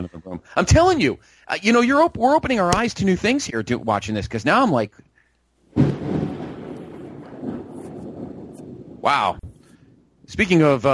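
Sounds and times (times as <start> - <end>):
speech: 0.0 - 5.0, 9.0 - 9.5, 10.3 - 10.9
thunder after a lightning bolt: 5.7 - 10.4.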